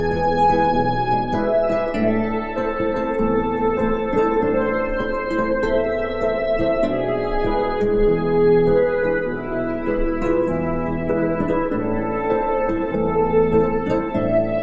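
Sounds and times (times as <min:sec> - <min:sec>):
guitar strings tuning: 0:00.0 - 0:14.6.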